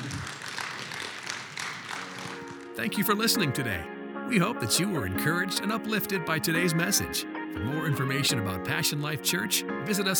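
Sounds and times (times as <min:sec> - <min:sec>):
audience applause: 0:00.0 - 0:02.8
speech: 0:02.8 - 0:10.1.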